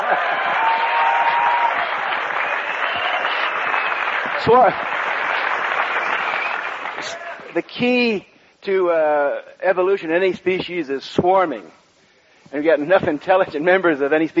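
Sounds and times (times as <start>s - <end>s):
audience applause: 0.0s - 7.5s
speech: 4.4s - 5.0s, 7.0s - 11.8s, 12.5s - 14.3s.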